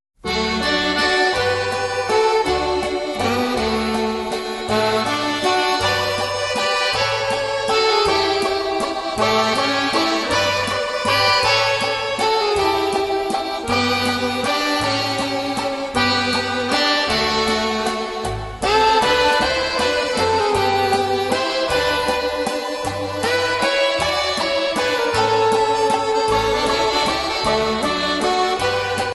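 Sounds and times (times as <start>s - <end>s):
waltz music: 0.2s - 29.1s.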